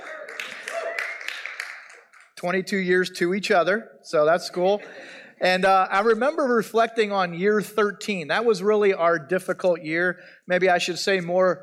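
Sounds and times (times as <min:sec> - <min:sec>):
audience clapping: 0:00.0 - 0:02.4
speech: 0:02.4 - 0:11.6.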